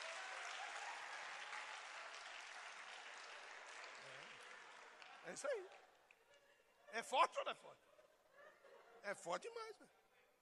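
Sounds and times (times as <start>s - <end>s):
faint applause for Jesus at a religious gathering: 0.0s - 6.2s
speech: 5.2s - 5.8s, 6.9s - 7.8s, 9.0s - 10.0s.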